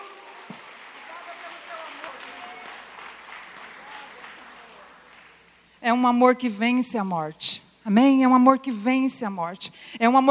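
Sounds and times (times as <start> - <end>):
audience applauding: 0.0 - 5.7
speech: 5.8 - 10.2.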